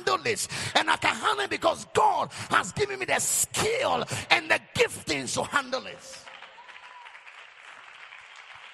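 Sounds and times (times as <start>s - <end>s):
speech: 0.1s - 6.3s
audience clapping hands: 6.0s - 8.7s.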